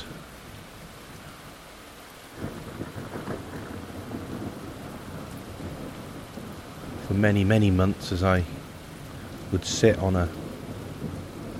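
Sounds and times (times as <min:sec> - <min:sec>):
rainstorm: 0:00.0 - 0:11.5
thunder: 0:02.4 - 0:11.5
speech: 0:07.2 - 0:08.6, 0:09.5 - 0:10.4.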